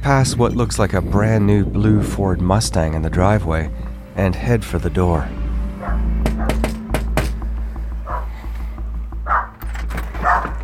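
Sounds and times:
speech: 0:00.0 - 0:05.4
low hum: 0:00.0 - 0:10.6
dog barking: 0:05.8 - 0:06.6, 0:08.1 - 0:08.3, 0:09.3 - 0:09.6, 0:10.2 - 0:10.6.

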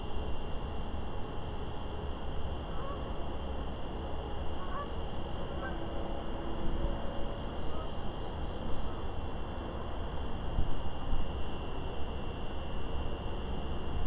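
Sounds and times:
crickets trilling in a park at night: 0:00.2 - 0:14.0.

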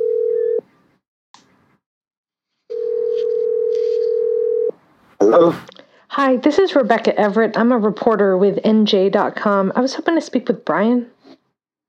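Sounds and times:
ringback tone of an outgoing phone call: 0:00.0 - 0:00.6, 0:02.7 - 0:04.7
speech: 0:05.3 - 0:11.2.

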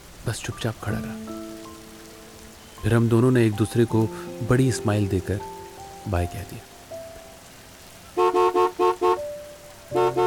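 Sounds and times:
speech: 0:00.2 - 0:01.4, 0:02.8 - 0:06.7
taxi horn honking: 0:08.2 - 0:09.3, 0:10.0 - 0:10.2.

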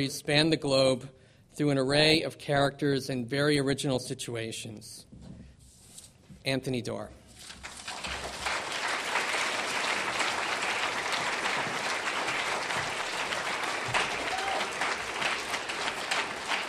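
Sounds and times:
speech: 0:00.0 - 0:05.1, 0:06.4 - 0:07.6
audience applause: 0:07.6 - 0:16.6.

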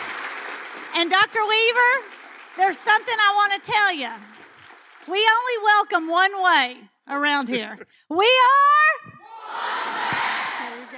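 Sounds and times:
speech: 0:01.0 - 0:04.4, 0:05.0 - 0:08.8
crowd of students shouting a chant: 0:09.2 - 0:10.9.

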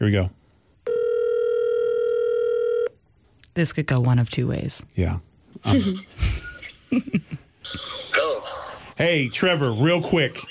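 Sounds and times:
speech: 0:00.0 - 0:00.4, 0:03.6 - 0:08.2, 0:09.0 - 0:10.4
telephone dial tone on an outgoing call: 0:00.9 - 0:03.0.

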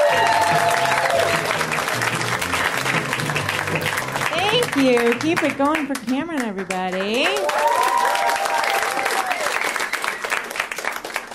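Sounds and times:
crowd cheers: 0:00.0 - 0:04.3, 0:07.2 - 0:10.7
audience clapping for a comedian at a stand-up comedy show: 0:00.0 - 0:11.3
speech: 0:04.8 - 0:07.9.

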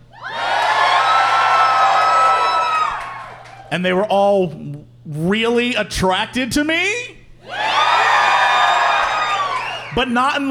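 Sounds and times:
live audience cheering: 0:00.1 - 0:03.7, 0:07.4 - 0:10.4
speech: 0:03.7 - 0:07.0, 0:10.0 - 0:10.4.

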